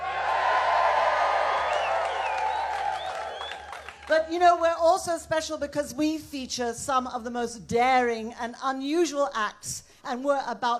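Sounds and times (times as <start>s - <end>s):
festival crowd cheering outdoors: 0.0s - 4.2s
high whoops and whistles: 1.4s - 3.9s
speech: 4.1s - 10.7s.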